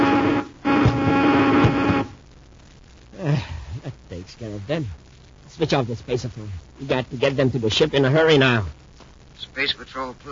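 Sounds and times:
ray gun buzzing: 0:00.0 - 0:02.2
speech: 0:04.4 - 0:08.8, 0:09.4 - 0:10.3.

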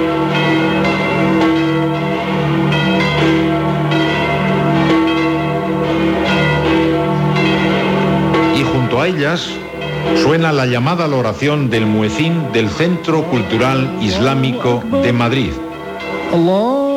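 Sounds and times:
large church bells of St Peter's Basilica in the Vatican ringing: 0:00.0 - 0:16.9
speech: 0:09.2 - 0:09.5, 0:10.2 - 0:15.6, 0:16.3 - 0:16.8.

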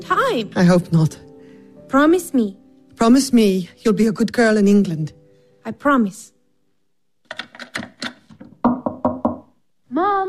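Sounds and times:
speech: 0:00.1 - 0:01.3, 0:01.9 - 0:06.4
knocking on a locked door: 0:07.4 - 0:09.6.

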